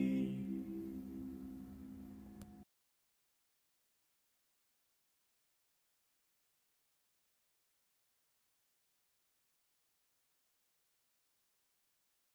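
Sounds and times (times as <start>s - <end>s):
barbershop tenor singing: 0.0s - 1.4s.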